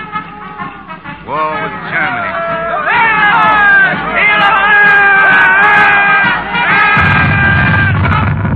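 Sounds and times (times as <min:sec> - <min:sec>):
large crowd cheering and shouting: 0:00.2 - 0:08.4.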